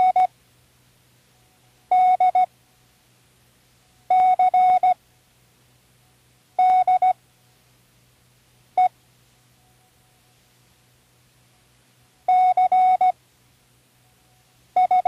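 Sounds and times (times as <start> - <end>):
morse code beeps for learning: 0.0 - 0.3, 1.9 - 2.5, 4.1 - 5.0, 6.6 - 7.2, 12.3 - 13.2, 14.8 - 15.0.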